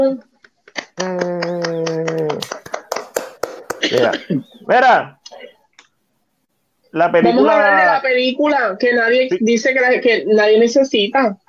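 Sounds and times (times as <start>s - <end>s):
speech: 0.0s - 0.3s, 1.0s - 1.5s, 3.9s - 5.5s, 6.9s - 11.4s
applause: 1.6s - 4.2s.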